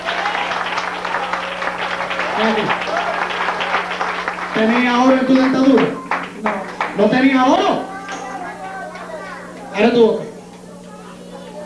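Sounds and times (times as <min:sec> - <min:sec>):
applause: 0:00.0 - 0:07.3
speech: 0:02.4 - 0:03.1, 0:04.6 - 0:07.9, 0:09.8 - 0:10.2.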